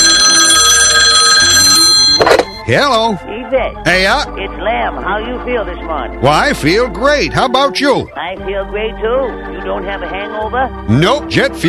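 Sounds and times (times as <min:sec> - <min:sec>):
telephone ringing with an electronic trill: 0:00.0 - 0:02.9
speech: 0:02.7 - 0:11.6.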